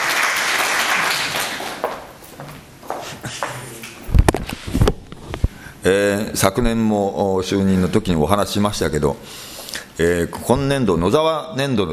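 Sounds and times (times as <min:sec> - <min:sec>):
audience applause: 0:00.0 - 0:02.1
speech: 0:05.8 - 0:11.9.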